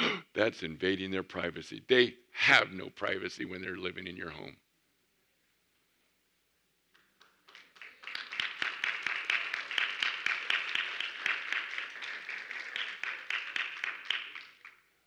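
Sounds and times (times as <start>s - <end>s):
speech: 0.4s - 4.6s
audience of parents clapping: 6.9s - 15.0s.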